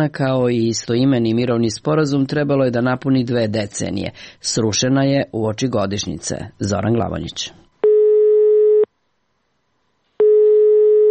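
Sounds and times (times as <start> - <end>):
speech: 0.0 - 7.6
telephone tone on an unanswered line at the former Dayton petrol station: 7.8 - 8.9, 10.2 - 11.0.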